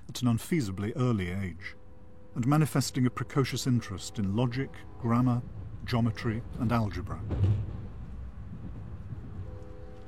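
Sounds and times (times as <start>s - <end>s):
train travelling through Illinois: 0.0s - 10.0s
speech: 0.2s - 1.8s, 2.4s - 7.8s.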